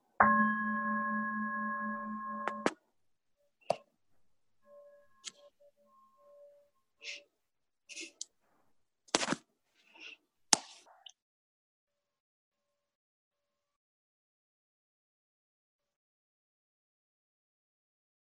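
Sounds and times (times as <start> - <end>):
meditation bell ringing: 0.2 - 2.7, 4.6 - 6.8.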